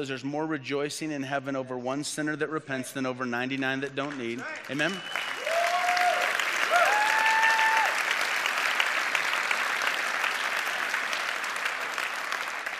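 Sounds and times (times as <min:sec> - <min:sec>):
speech: 0:00.0 - 0:05.4
audience applauding: 0:04.3 - 0:12.7
whoops and whistled cheers: 0:04.9 - 0:08.0.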